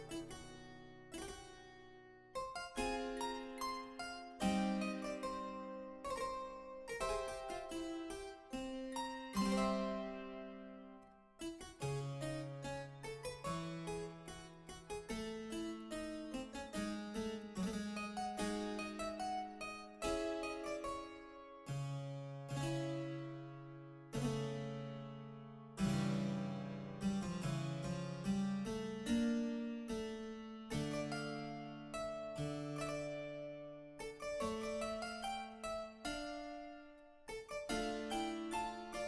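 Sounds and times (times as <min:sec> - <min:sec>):
solo harpsichord piece: 0:00.0 - 0:39.0.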